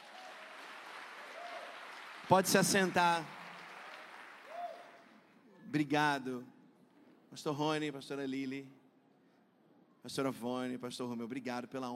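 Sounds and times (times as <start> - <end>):
audience applauding: 0.0 - 5.3
speech: 2.3 - 3.4, 5.7 - 6.6, 7.3 - 8.8, 10.0 - 11.9.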